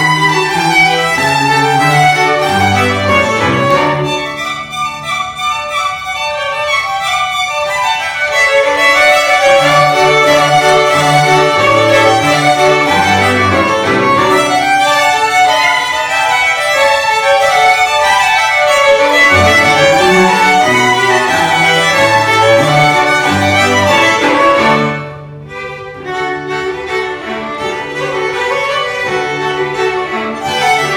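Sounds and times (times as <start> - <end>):
Scottish folk tunes on fiddle: 0.0 - 30.9.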